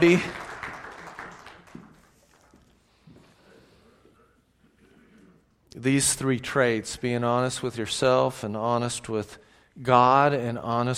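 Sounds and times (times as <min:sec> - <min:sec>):
speech: 0:00.0 - 0:00.4, 0:05.8 - 0:10.9
crowd applauding: 0:00.0 - 0:02.8.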